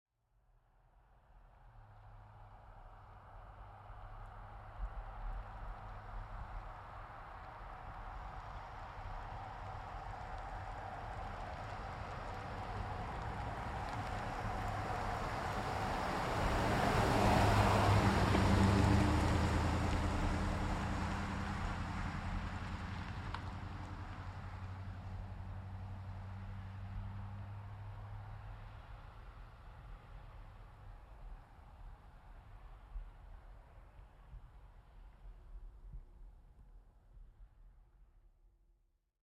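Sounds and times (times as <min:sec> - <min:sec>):
GMC Savana truck driving slowly by a corner: 0:01.4 - 0:35.7.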